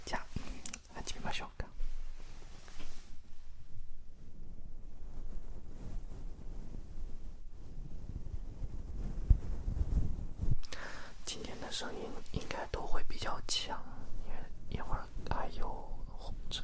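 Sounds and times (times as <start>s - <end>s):
brush stroking against microphone: 0.0s - 16.6s
speech: 11.8s - 13.9s.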